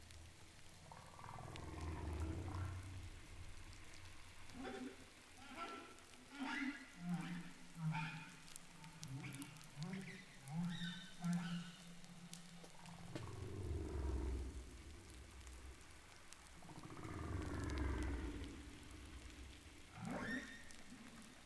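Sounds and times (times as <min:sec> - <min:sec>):
humpback whale calls: 0:00.0 - 0:21.4.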